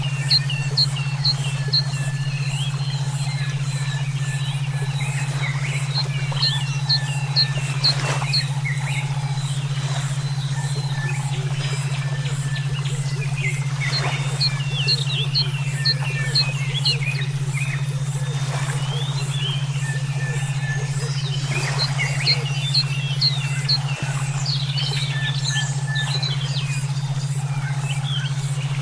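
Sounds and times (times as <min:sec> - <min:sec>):
brainwave therapy tones: 0:00.0 - 0:28.8.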